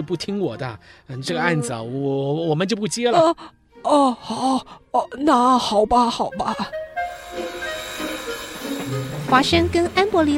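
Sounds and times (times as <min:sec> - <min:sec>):
speech: 0:00.1 - 0:06.8, 0:09.3 - 0:10.3
train rumbling: 0:07.0 - 0:10.3.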